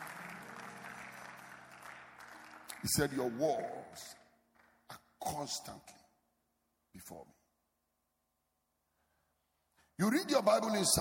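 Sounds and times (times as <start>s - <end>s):
audience clapping hands: 0.0s - 5.4s
speech: 2.8s - 4.2s, 5.4s - 5.9s, 7.0s - 7.4s, 10.0s - 10.9s.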